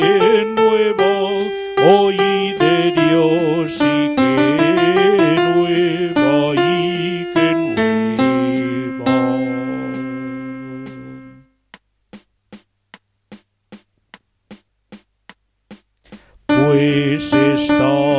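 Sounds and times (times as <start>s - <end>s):
contralto voice: 0.0s - 11.5s, 16.5s - 18.1s.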